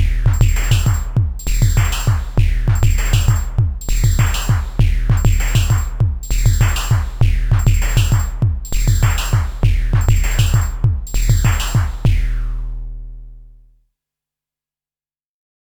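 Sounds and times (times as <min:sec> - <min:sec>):
synthesizer pattern: 0:00.0 - 0:12.2.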